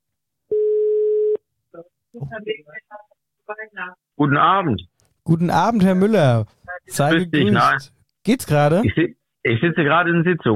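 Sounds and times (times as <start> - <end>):
telephone ringing tone during an outgoing call: 0.5 - 1.4
speech: 2.2 - 10.5.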